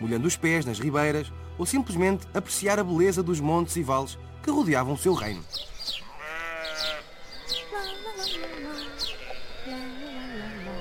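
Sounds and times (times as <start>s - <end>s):
speech: 0.0s - 6.0s
flock of sheep grazing in a meadow bleating: 6.0s - 10.7s.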